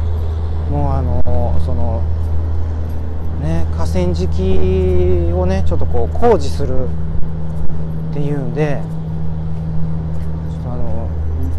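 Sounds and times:
cargo ship passing on river: 0.0 - 11.5
speech: 0.7 - 2.3, 3.4 - 7.1, 8.2 - 9.0.

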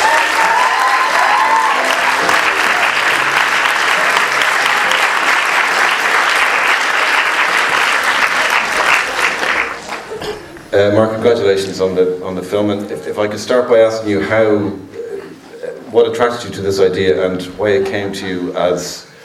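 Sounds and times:
audience applause welcoming a film's writer-director to the stage: 0.0 - 10.4
speech: 10.8 - 14.9, 15.9 - 19.1.

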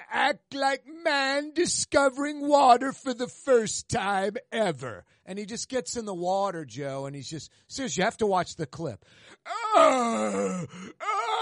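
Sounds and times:
speech: 0.3 - 11.2
man grunting and making noises: 9.6 - 11.4.

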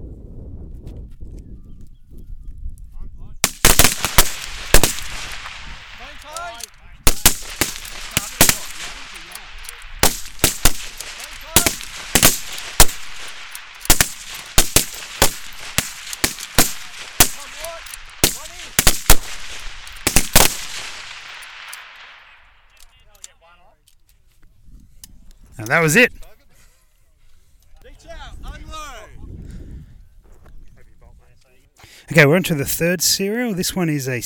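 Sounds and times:
rapid-fire gunshots on a shooting range: 3.4 - 22.4
speech: 25.7 - 26.1, 32.2 - 34.2.

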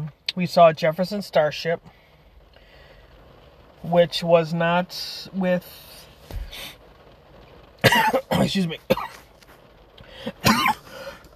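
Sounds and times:
speech: 0.4 - 2.0, 3.8 - 6.8, 7.9 - 9.2
person coughing after choking on a chocolate chip in a Frappuccino: 7.8 - 9.2, 10.2 - 11.2.

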